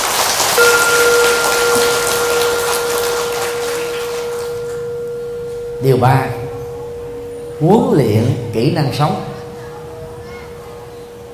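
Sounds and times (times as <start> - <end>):
audience giving a big round of applause: 0.0 - 4.8
speech: 0.6 - 1.0, 5.8 - 6.4, 7.6 - 9.3.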